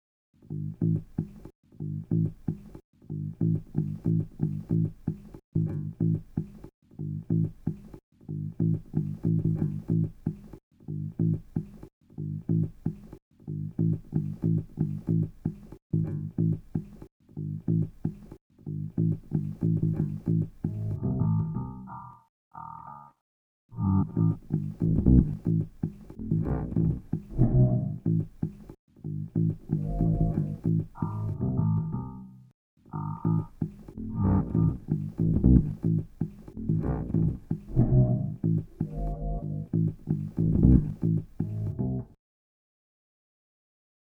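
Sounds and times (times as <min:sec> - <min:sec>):
bass saxophone: 0:00.5 - 0:01.0, 0:01.8 - 0:02.3, 0:03.1 - 0:04.9, 0:05.6 - 0:06.2, 0:07.0 - 0:07.6, 0:08.3 - 0:10.1, 0:10.9 - 0:11.4, 0:12.2 - 0:12.8, 0:13.5 - 0:15.3, 0:16.0 - 0:16.6, 0:17.4 - 0:17.9, 0:18.7 - 0:22.0, 0:23.8 - 0:28.3, 0:29.1 - 0:42.2.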